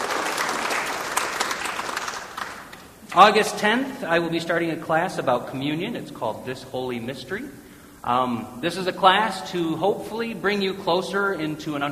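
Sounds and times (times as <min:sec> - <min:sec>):
audience applauding: 0:00.0 - 0:03.3
speech: 0:03.2 - 0:11.9.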